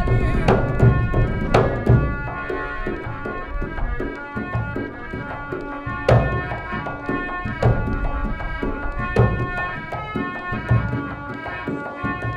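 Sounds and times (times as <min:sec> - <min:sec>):
drum at the Karni Mata Temple Deshnoke: 0:00.0 - 0:03.3
harmonium at the Karni Mata Temple Deshnoke: 0:00.0 - 0:12.3.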